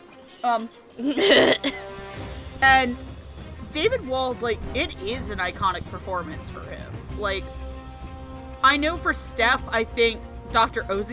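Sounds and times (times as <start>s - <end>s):
speech: 0.4s - 1.9s, 2.6s - 3.1s, 3.7s - 7.6s, 8.6s - 11.1s
person coughing on something caught in the throat: 1.0s - 2.0s.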